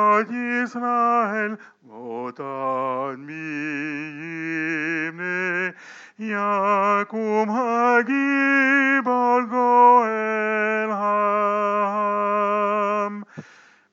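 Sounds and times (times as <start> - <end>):
man singing soprano chant: 0.0 - 13.4.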